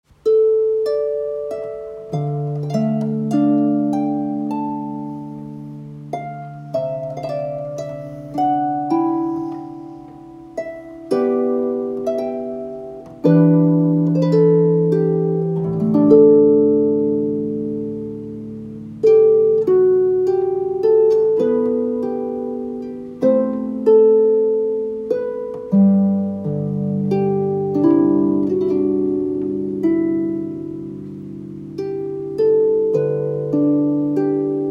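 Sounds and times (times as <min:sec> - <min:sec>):
harp: 0:00.0 - 0:34.6.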